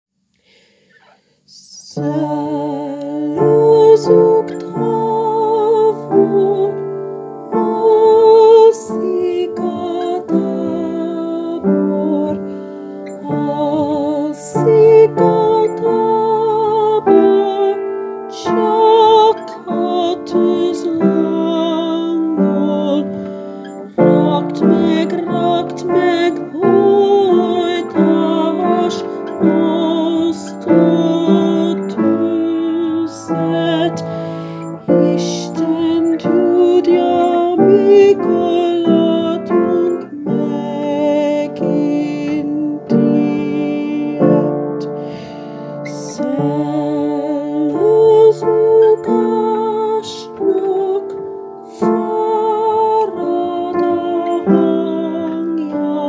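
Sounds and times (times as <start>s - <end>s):
soprano singing: 1.5s - 56.0s.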